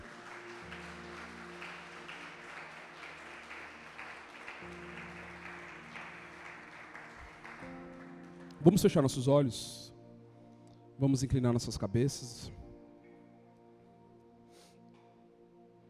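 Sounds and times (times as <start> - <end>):
audience applause: 0.0 - 8.9
speech: 8.6 - 9.8, 11.0 - 12.6.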